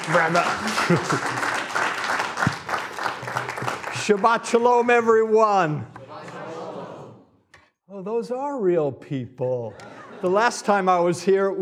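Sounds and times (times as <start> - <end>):
laughter: 0.0 - 1.8, 6.1 - 7.3, 9.6 - 11.4
audience clapping to welcome a rabbi to a congregation: 0.0 - 6.7
speech: 0.1 - 1.6, 4.0 - 6.0, 8.0 - 11.6.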